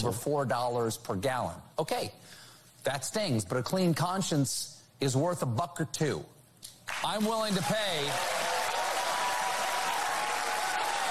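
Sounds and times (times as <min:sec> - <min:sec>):
speech: 0:00.0 - 0:06.4, 0:07.0 - 0:08.4
audience clapping: 0:06.9 - 0:11.1.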